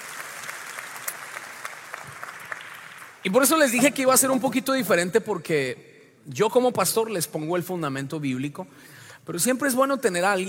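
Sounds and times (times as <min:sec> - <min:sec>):
audience applause: 0:00.0 - 0:03.3
speech: 0:03.2 - 0:10.4.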